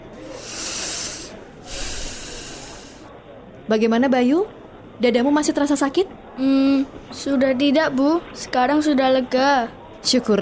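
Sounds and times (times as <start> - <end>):
deep breath in through the nose: 0.0 - 3.1
speech: 3.7 - 10.4.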